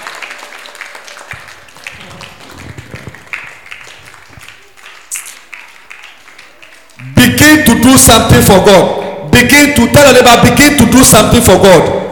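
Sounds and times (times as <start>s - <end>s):
audience clapping: 0.0s - 7.4s
speech: 7.8s - 12.0s.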